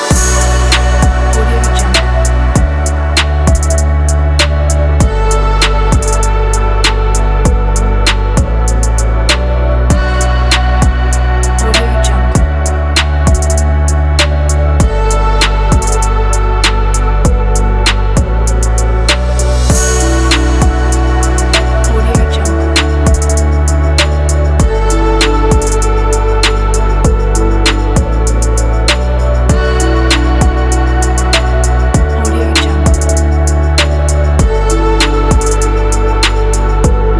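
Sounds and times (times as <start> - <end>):
urban beat: 0.1 - 37.1.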